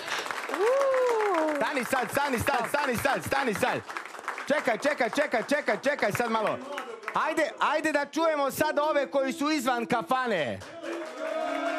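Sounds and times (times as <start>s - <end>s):
tavern patrons clapping in the kafana: 0.0s - 7.5s, 10.3s - 11.7s
speech: 1.6s - 10.7s.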